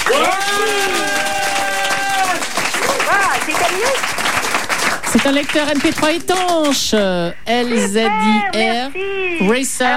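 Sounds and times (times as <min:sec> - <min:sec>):
excited voices cheering and whooping: 0:00.0 - 0:03.4
crowd applauding: 0:00.0 - 0:06.9
speech: 0:05.2 - 0:09.9.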